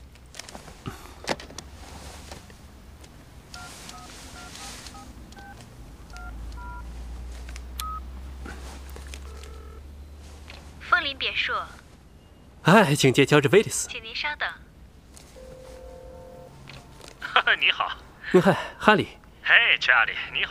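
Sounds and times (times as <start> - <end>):
telephone being dialed: 3.5 - 6.8, 9.1 - 9.8
speech: 11.2 - 11.8, 12.6 - 14.6, 17.6 - 20.4.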